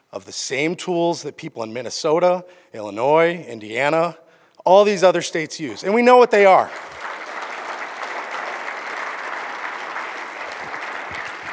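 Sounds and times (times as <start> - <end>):
speech: 0.1 - 7.0
audience applause: 5.7 - 11.5.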